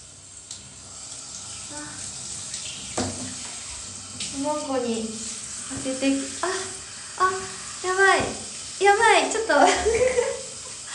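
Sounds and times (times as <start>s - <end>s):
shower water running in a bathroom: 0.0s - 10.9s
soft knocks and splashes: 2.9s - 3.6s
speech: 4.4s - 10.2s
laughter: 9.6s - 10.8s.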